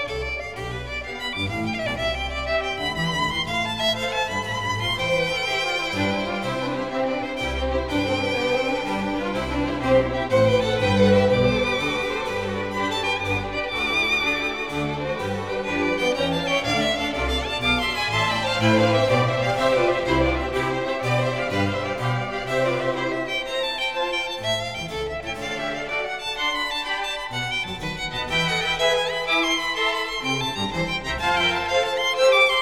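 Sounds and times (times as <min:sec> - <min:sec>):
concerto for violin strings and continuo in A minor: 0:00.0 - 0:32.5.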